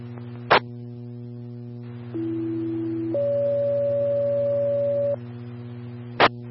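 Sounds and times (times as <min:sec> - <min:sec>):
constant low hum: 0:00.0 - 0:06.4
radio test tones for County Quad 1 on southbound channel: 0:02.1 - 0:05.2.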